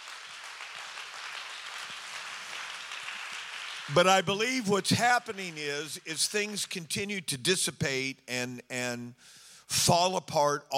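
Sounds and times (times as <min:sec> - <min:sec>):
audience clapping hands: 0:00.0 - 0:06.6
speech: 0:03.9 - 0:10.7.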